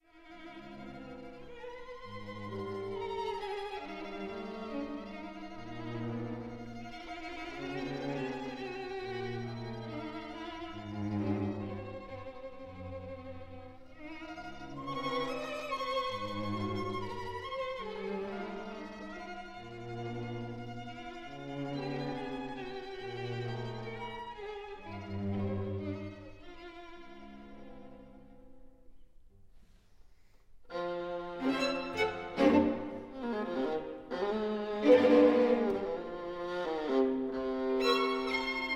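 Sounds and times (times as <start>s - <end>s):
string quartet playing: 0.1s - 28.6s, 30.7s - 38.7s.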